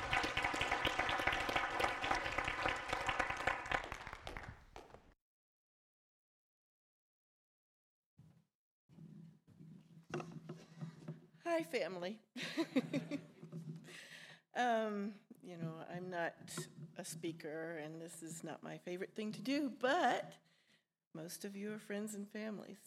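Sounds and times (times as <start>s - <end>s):
church congregation applauding to welcome a speaker: 0.0s - 5.1s
speech: 11.5s - 13.3s, 14.6s - 20.5s, 21.2s - 22.8s.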